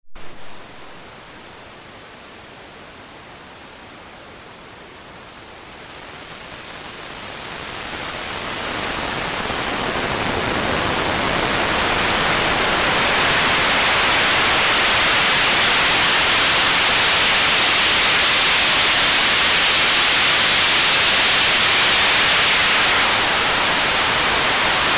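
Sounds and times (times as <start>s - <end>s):
noise: 0.0s - 24.9s.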